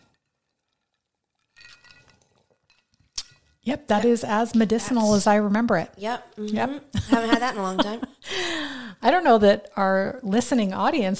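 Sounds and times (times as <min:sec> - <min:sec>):
ice cubes clinking in a glass: 0:01.5 - 0:03.4
speech: 0:03.7 - 0:11.1.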